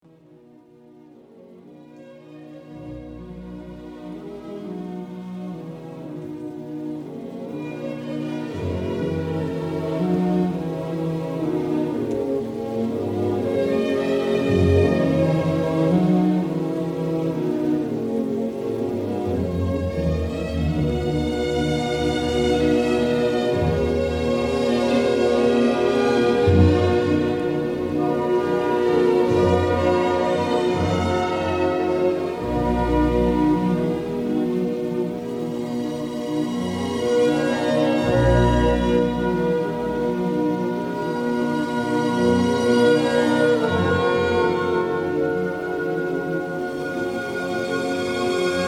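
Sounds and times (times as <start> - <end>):
classical music: 0.0 - 48.6.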